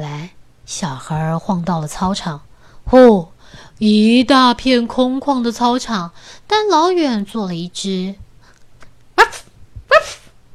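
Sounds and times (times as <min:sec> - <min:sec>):
faint low hum: 0:00.0 - 0:10.5
speech: 0:00.7 - 0:08.2
excited puppy barking: 0:09.2 - 0:10.3.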